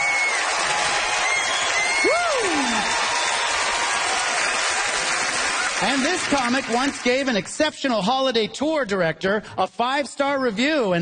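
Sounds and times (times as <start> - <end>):
audience cheering for hometown comic: 0.0 - 7.3
speech: 5.8 - 11.0.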